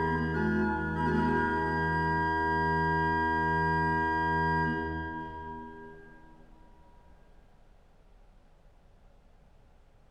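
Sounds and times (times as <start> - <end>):
chorale prelude: 0.0 - 6.6.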